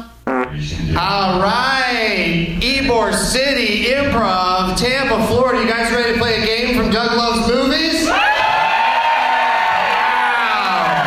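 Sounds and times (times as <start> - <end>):
speech: 0.5 - 7.8
live audience cheering and whooping: 8.1 - 11.0.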